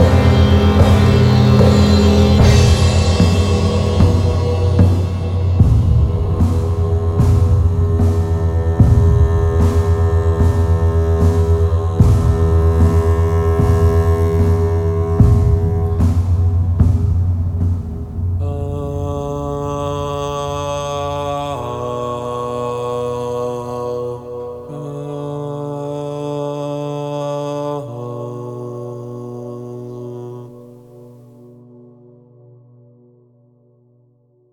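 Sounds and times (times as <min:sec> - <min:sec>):
light epic trailer music: 0:00.0 - 0:24.7.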